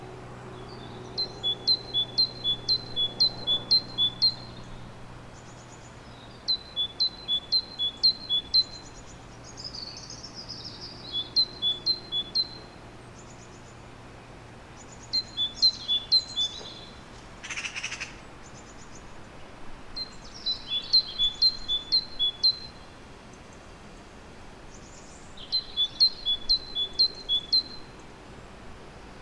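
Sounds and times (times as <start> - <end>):
faint soft bird call: 0.6 - 4.8, 5.4 - 13.8, 14.8 - 19.1, 20.0 - 23.0, 24.9 - 28.0
great tit singing: 0.6 - 14.0, 14.7 - 19.2, 20.0 - 28.1.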